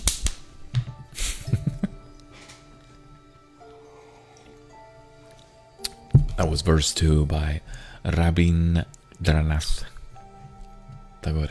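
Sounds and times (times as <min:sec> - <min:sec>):
finger snaps: 0:00.0 - 0:00.9, 0:05.3 - 0:06.1
speech: 0:06.4 - 0:09.9, 0:11.2 - 0:11.4.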